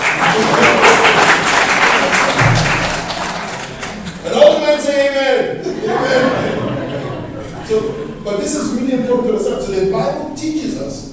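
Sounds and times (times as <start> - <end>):
women clapping their hands: 0.0 - 4.7
laughter: 0.0 - 9.2
low thump: 2.4 - 3.1
speech: 8.5 - 11.1.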